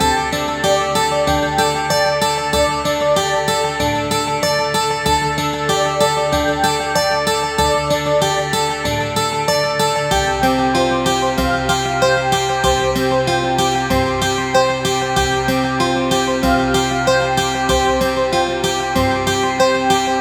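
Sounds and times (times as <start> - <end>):
interlude music loop: 0.0 - 20.1.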